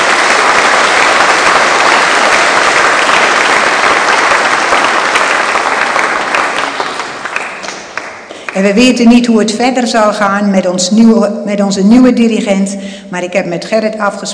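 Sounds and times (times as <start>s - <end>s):
audience applause: 0.0s - 8.6s
speech: 8.6s - 14.3s.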